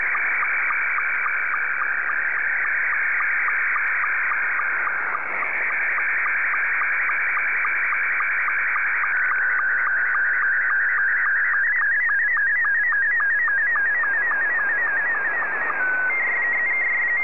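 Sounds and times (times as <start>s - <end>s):
Scottie 1 slow-scan television signal: 0.0s - 17.2s.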